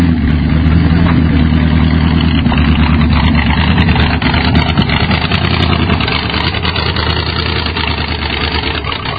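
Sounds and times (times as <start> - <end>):
Nissan Micra V8 engine: 0.0 - 9.1.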